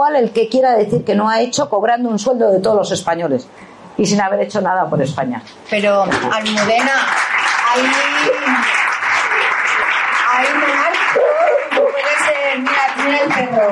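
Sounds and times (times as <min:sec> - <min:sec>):
speech: 0:00.0 - 0:08.8
applause: 0:06.1 - 0:13.7
indistinct voices murmuring: 0:11.0 - 0:12.1.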